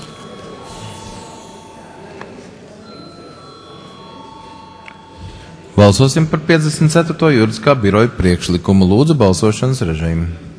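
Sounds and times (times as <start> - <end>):
parliament chamber voting bell: 0.0 - 7.7
low room murmur: 0.0 - 10.5
speech: 5.8 - 10.5.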